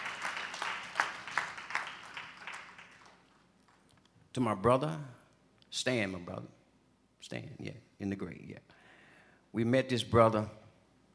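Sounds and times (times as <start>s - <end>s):
audience clapping hands in praise: 0.0s - 4.0s
speech: 4.4s - 6.6s, 7.2s - 8.8s, 9.5s - 10.6s.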